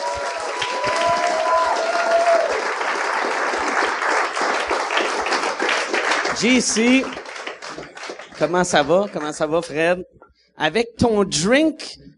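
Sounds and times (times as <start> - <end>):
audience applause: 0.0 - 9.7
speech: 6.4 - 7.2, 8.4 - 12.1.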